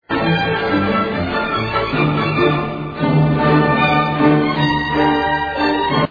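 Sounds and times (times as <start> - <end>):
fast classical music: 0.0 - 6.0.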